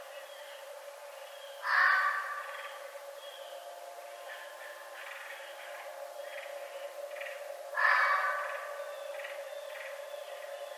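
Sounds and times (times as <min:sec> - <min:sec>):
steady low hum: 0:00.0 - 0:10.7
red fox hoarse rasping call: 0:01.6 - 0:02.4, 0:07.8 - 0:08.7.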